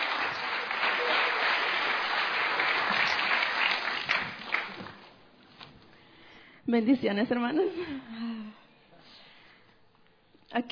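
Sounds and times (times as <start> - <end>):
audience applause: 0.0 - 5.2
speech: 6.7 - 8.3.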